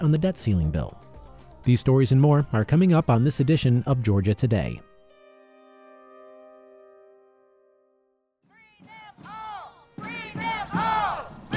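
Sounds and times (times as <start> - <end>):
speech: 0.0 - 4.9
protest crowd chanting: 8.8 - 11.5.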